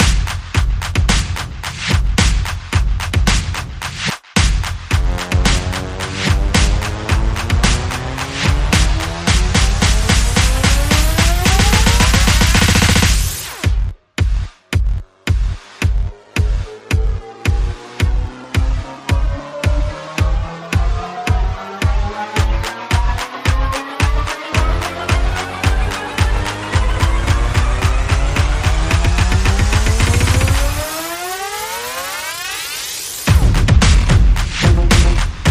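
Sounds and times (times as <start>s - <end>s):
percussion: 0.0s - 35.4s
sound effects: 4.9s - 13.8s, 15.9s - 33.3s.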